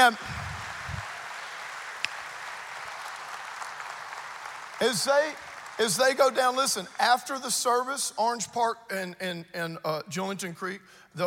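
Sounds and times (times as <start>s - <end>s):
speech: 0.0s - 0.4s, 4.8s - 11.2s
people clapping: 0.0s - 7.6s.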